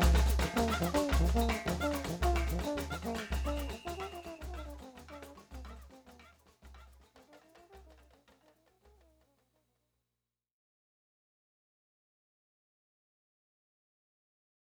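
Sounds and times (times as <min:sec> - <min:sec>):
trombone: 0:00.0 - 0:06.2
batucada Brazilian rhythm on a drumset: 0:00.0 - 0:08.3.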